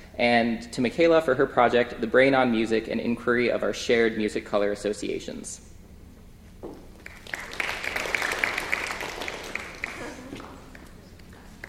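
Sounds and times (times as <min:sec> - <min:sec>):
speech: 0:00.2 - 0:05.7
audience clapping: 0:06.9 - 0:11.6.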